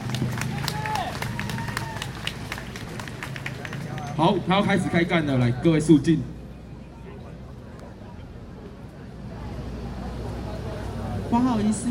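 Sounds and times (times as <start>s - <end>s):
crowd clapping: 0.0s - 4.4s
speech: 4.2s - 6.3s, 11.3s - 11.8s.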